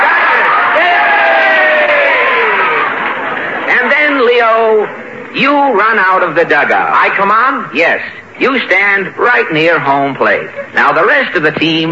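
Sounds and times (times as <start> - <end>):
crowd cheering in the stands at a baseball game: 0.0 - 4.9
speech: 5.3 - 11.9.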